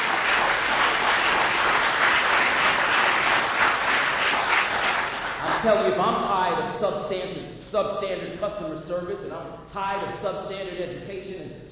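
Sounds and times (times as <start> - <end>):
audience clapping: 0.0 - 6.0
speech: 5.6 - 11.6.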